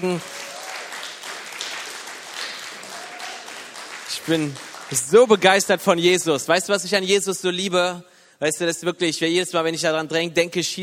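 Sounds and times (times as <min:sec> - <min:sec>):
speech: 0:00.0 - 0:00.4, 0:04.2 - 0:10.8
audience applause: 0:00.0 - 0:05.5.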